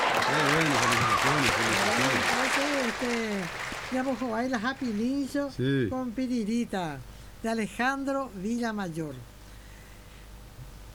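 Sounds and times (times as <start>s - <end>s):
applause: 0.0s - 5.3s
speech: 4.0s - 9.3s.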